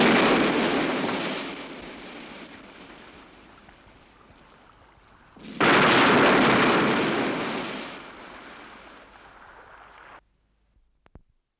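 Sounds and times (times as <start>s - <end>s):
grenade explosion: 0.0s - 3.5s, 5.4s - 9.4s.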